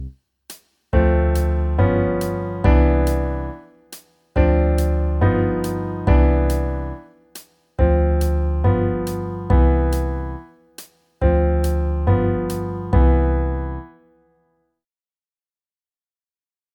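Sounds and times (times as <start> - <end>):
jazz backing music: 1.0 - 3.7, 4.4 - 7.1, 7.8 - 10.5, 11.2 - 13.9.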